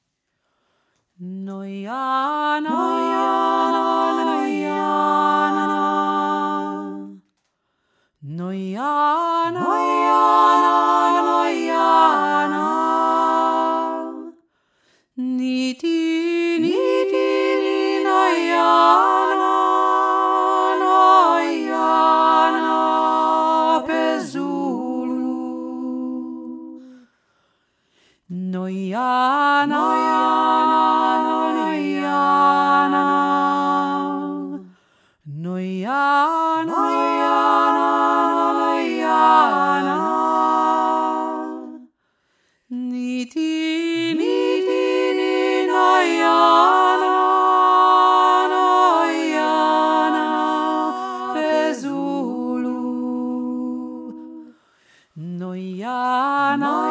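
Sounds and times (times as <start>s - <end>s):
three-part singing: 1.2s - 7.5s, 8.2s - 14.5s, 15.2s - 27.2s, 28.2s - 42.0s, 42.7s - 56.8s.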